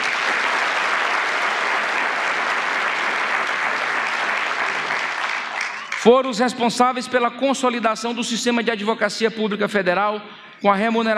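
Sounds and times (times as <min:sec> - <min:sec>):
applause: 0:00.0 - 0:06.4
speech: 0:06.0 - 0:11.1.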